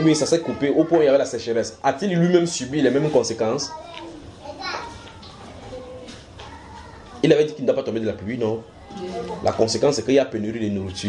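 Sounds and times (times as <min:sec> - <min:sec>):
children shrieking and chattering: 0:00.0 - 0:01.3, 0:03.7 - 0:07.3, 0:08.7 - 0:09.6, 0:10.6 - 0:11.0
speech: 0:00.0 - 0:04.8, 0:07.2 - 0:11.0.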